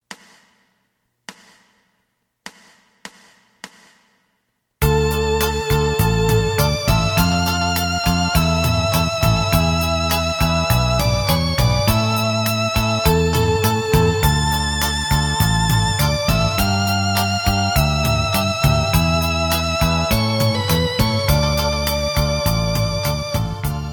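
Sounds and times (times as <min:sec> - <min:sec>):
lead melody: 0:04.8 - 0:23.9.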